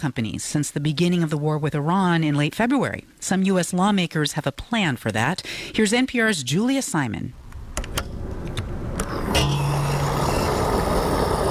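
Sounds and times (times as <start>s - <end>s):
speech: 0.0s - 7.4s
car engines at a gas station: 7.4s - 11.5s.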